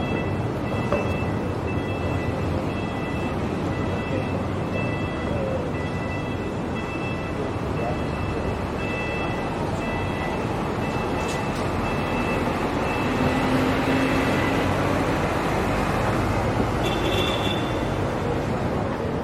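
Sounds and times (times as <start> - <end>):
traffic and engines roaring around Town Hall in central Sydney: 0.0 - 19.2.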